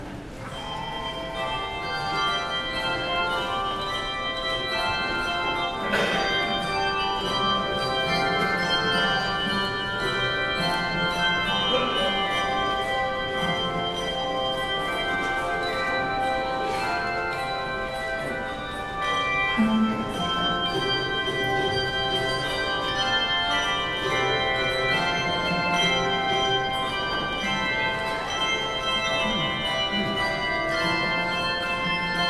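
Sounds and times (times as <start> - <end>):
handbells: 0.0 - 32.2.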